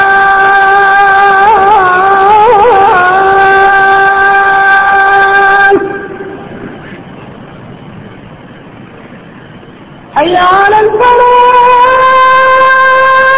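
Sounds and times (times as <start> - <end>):
adhan call to prayer in Medina: 0.0 - 7.2, 10.1 - 13.3.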